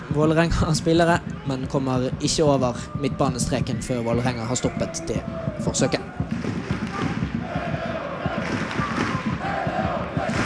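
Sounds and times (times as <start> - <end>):
speech: 0.2 - 6.4
home supporters clapping and singing in stadium: 4.9 - 10.4.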